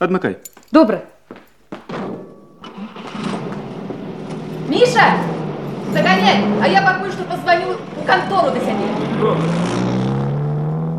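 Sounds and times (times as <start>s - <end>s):
speech: 0.0s - 1.1s, 4.7s - 9.9s
car engine starting: 2.6s - 10.9s.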